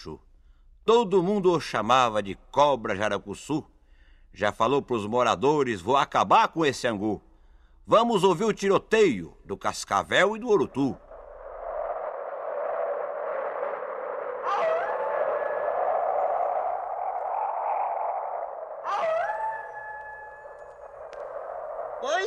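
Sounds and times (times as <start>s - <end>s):
speech: 0.0s - 3.7s, 4.3s - 7.3s, 7.9s - 11.0s
strong wind: 11.0s - 22.2s
wolves howling: 11.1s - 22.2s.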